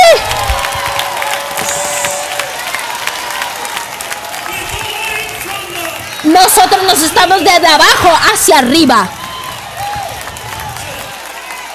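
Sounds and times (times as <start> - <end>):
crowd of worshippers cheering and shouting: 0.0 - 11.7
clapping: 0.3 - 7.1, 9.1 - 11.7
speech: 6.5 - 9.2.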